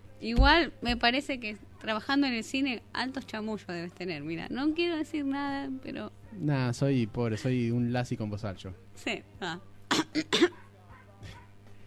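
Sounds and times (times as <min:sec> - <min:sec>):
speech: 0:00.2 - 0:10.6
person coughing: 0:09.9 - 0:10.6.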